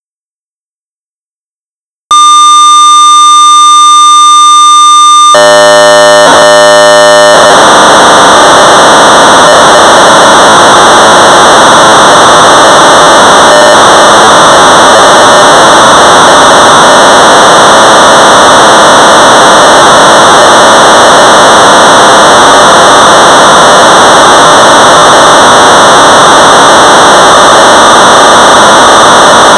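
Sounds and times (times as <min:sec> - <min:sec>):
1200 baud modem data tones: 0:02.1 - 0:29.5.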